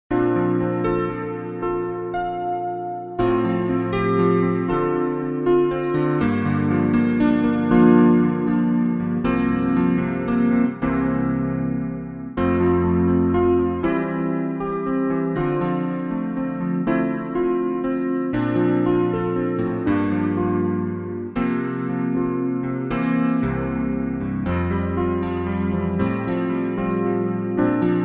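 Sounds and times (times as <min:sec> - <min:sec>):
instrumental track without melody: 0:00.1 - 0:28.0.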